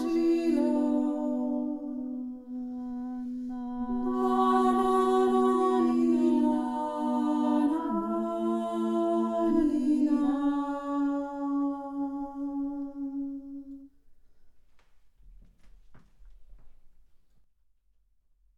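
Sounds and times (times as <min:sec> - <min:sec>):
person singing a Georgian healing song: 0:00.0 - 0:13.9.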